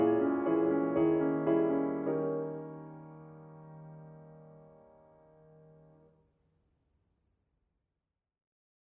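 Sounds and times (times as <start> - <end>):
piano: 0.0 - 6.2.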